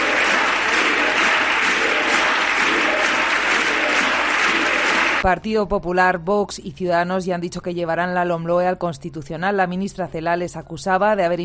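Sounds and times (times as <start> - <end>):
applause in parliament chamber: 0.0 - 5.3
speech: 5.2 - 11.4.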